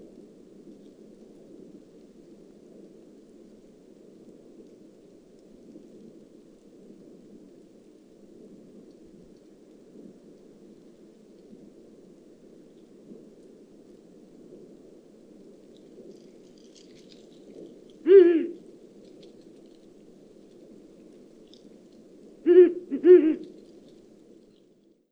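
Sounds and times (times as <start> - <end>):
Ural owl Strix uralensis calling at night: 18.1 - 18.6, 22.5 - 23.6.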